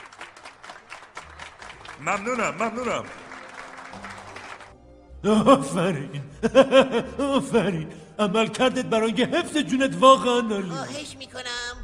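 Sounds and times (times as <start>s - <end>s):
audience applause welcoming two guests onto a stage: 0.0s - 4.8s
speech: 2.0s - 3.2s, 5.2s - 11.7s
laughter: 2.0s - 3.4s, 5.3s - 10.4s.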